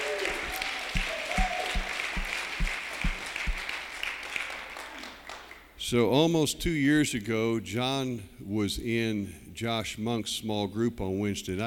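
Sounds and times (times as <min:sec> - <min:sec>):
audience applause: 0:00.0 - 0:05.6
speech: 0:05.9 - 0:11.6.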